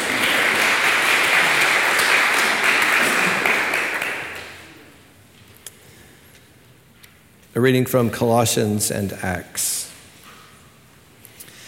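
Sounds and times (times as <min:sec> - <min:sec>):
audience applause: 0:00.0 - 0:04.9
speech: 0:07.6 - 0:09.7.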